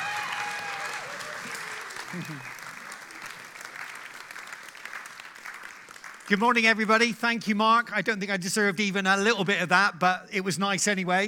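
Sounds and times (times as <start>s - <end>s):
church service audience applause welcoming a visiting preacher: 0.0s - 6.4s
speech: 2.1s - 2.6s, 6.3s - 11.2s.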